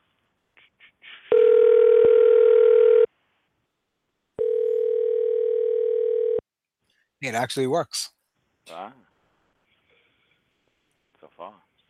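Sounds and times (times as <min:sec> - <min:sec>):
telephone dial tone while dialing out a call: 0:01.3 - 0:03.1, 0:04.4 - 0:06.4
speech: 0:07.2 - 0:09.1.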